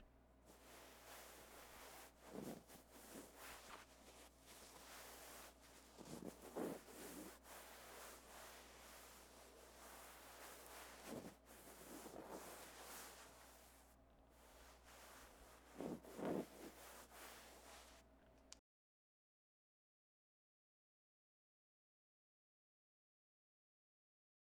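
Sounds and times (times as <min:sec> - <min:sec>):
burlap cloth rubbing and scratching: 0:00.5 - 0:18.0.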